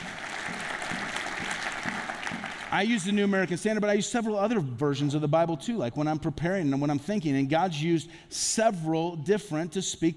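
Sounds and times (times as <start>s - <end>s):
church congregation applauding: 0.0s - 3.5s
speech: 2.7s - 10.1s.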